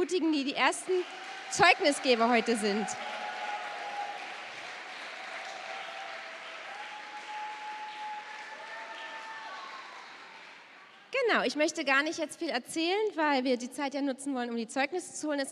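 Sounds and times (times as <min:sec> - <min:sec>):
speech: 0:00.0 - 0:03.2, 0:11.4 - 0:15.4
audience applause: 0:00.0 - 0:11.1.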